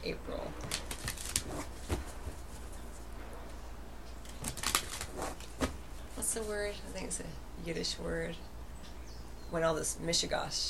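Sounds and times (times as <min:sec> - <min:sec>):
speech: 0:00.0 - 0:00.7, 0:06.4 - 0:08.5, 0:09.5 - 0:10.6
low steady hum: 0:00.0 - 0:10.6
After Tarot deck cards rustling as a single card is drawn: 0:00.6 - 0:03.1, 0:04.2 - 0:06.2.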